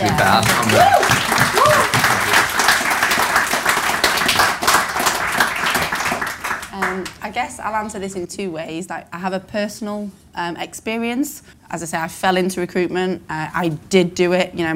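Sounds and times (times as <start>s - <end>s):
speech: 0.0s - 1.0s, 7.4s - 14.7s
crowd round of applause: 0.0s - 7.2s.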